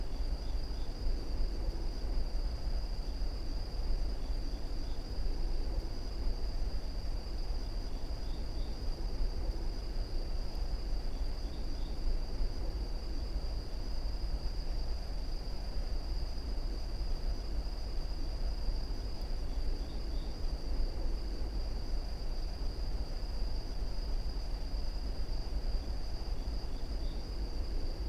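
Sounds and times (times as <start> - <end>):
forest ambience: 0.0 - 28.0.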